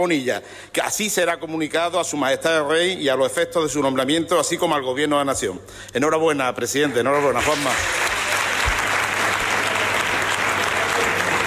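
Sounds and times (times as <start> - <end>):
speech: 0.0 - 8.1
parliament members applauding: 6.8 - 11.4.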